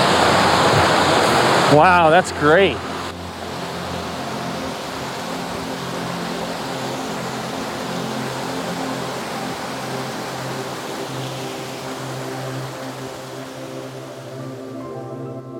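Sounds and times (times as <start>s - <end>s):
flowing, foaming water: 0.0s - 15.2s
speech: 1.7s - 2.9s.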